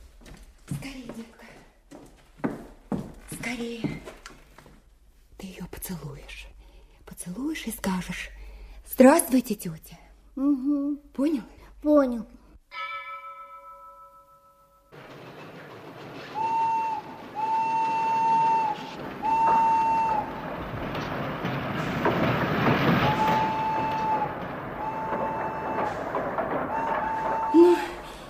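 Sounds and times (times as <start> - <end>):
speech: 3.5 - 4.1, 7.6 - 8.4, 9.0 - 12.4
train at a station: 14.9 - 28.2.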